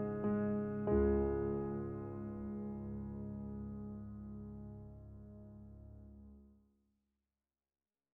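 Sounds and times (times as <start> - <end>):
piano prelude: 0.0 - 6.5.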